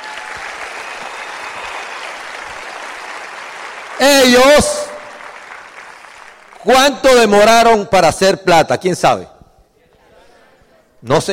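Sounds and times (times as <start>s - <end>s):
audience applause: 0.0s - 6.6s
speech: 4.0s - 4.8s, 6.6s - 9.3s, 11.0s - 11.3s.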